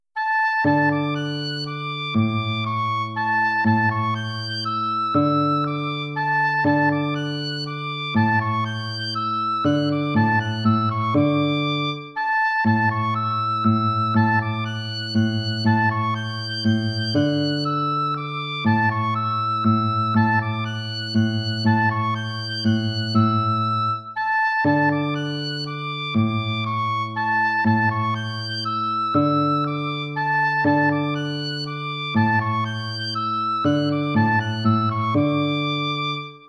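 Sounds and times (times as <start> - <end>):
waltz music: 0.2 - 36.4.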